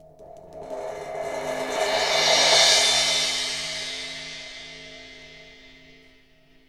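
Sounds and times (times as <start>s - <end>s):
cymbal roll: 0.0s - 6.5s
ambient sounds: 0.2s - 5.9s.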